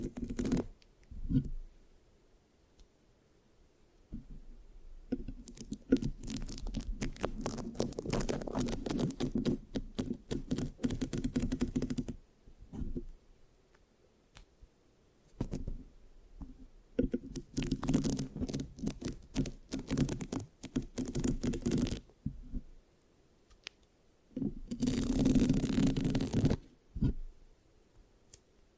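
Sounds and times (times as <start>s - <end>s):
scratching and rubbing on a microphone: 0.0s - 1.6s, 5.2s - 13.1s, 17.1s - 22.7s, 24.4s - 27.3s.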